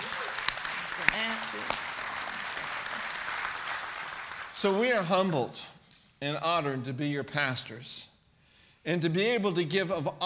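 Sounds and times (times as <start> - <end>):
congregation at a Christmas celebration applauding its pastoral staff: 0.0 - 5.5
speech: 4.6 - 8.1, 8.8 - 10.2.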